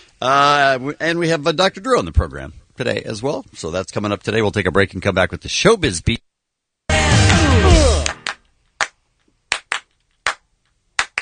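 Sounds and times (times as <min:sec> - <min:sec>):
speech: 0:00.2 - 0:06.2
music burst: 0:06.9 - 0:08.4
double hand claps: 0:08.0 - 0:11.2.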